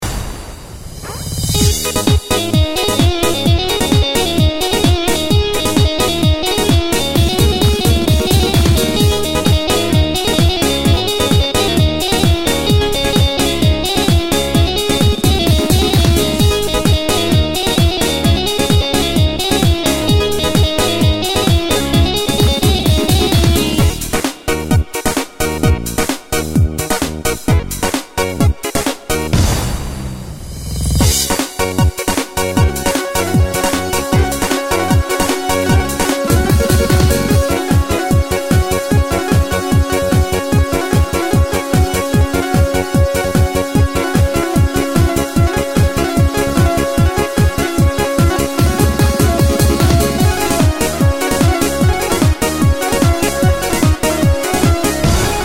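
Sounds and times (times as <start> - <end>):
Black Sea Turkish pop music: 1.0 - 29.6, 31.0 - 55.4.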